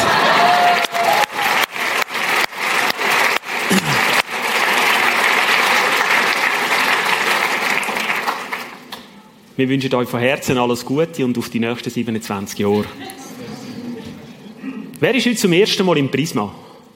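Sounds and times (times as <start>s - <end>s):
audience applause: 0.0s - 8.9s
speech: 9.6s - 13.3s, 15.0s - 16.7s.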